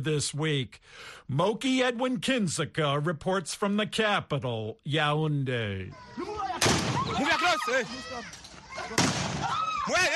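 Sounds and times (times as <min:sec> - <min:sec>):
speech: 0:00.0 - 0:10.1
people shouting: 0:05.9 - 0:10.1
gunfire from armed men shooting into the air in Cameroon: 0:06.6 - 0:07.3, 0:08.9 - 0:09.5.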